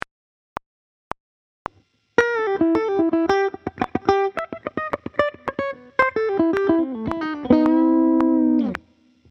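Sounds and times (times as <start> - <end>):
guitar played with hybrid picking: 2.2 - 9.3.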